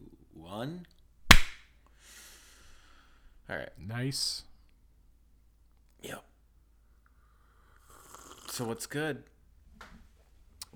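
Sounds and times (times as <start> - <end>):
speech: 0.5 - 1.0, 3.5 - 4.5, 6.0 - 6.3, 8.6 - 9.3
hand clap: 1.3 - 1.6.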